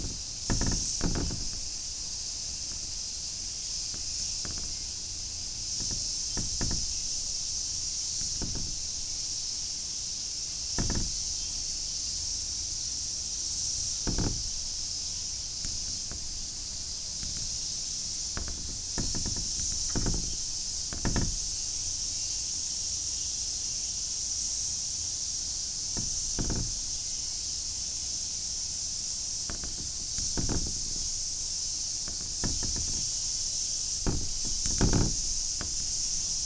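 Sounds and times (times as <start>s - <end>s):
knocks and rattling clicks: 0.0s - 9.3s, 10.8s - 11.5s, 13.9s - 21.9s, 26.0s - 27.0s, 29.3s - 36.4s
cicada drone: 0.0s - 36.4s.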